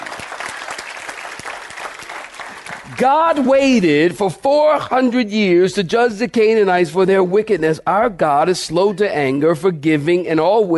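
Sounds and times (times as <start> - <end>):
audience clapping: 0.0 - 4.0
speech: 2.9 - 10.7.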